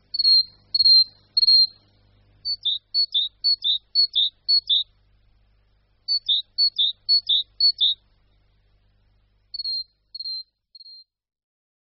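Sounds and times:
great tit singing: 0.0 - 1.8, 2.4 - 4.9, 6.1 - 8.0, 9.5 - 11.1.

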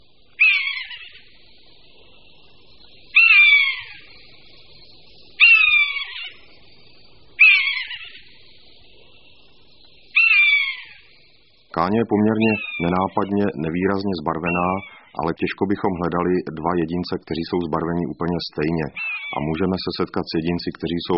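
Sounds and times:
common buzzard falling mewing call: 0.4 - 1.3, 3.2 - 4.1, 5.4 - 6.4, 7.4 - 8.3, 10.2 - 11.0, 11.8 - 15.3, 18.8 - 19.7
speech: 11.8 - 21.1.

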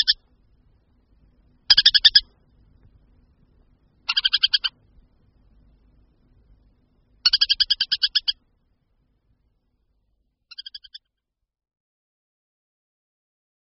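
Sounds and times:
Montagu's harrier chattering calls: 0.0 - 0.2, 1.7 - 2.3, 4.0 - 4.8, 7.2 - 8.4, 10.5 - 11.0.

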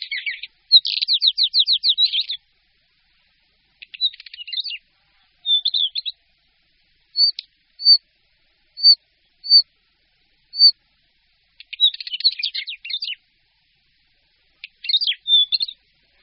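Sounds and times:
northern wheatear scratchy song: 0.0 - 2.4, 3.8 - 4.8, 5.4 - 6.2, 7.2 - 8.0, 8.8 - 9.6, 11.6 - 13.2, 14.6 - 15.8.

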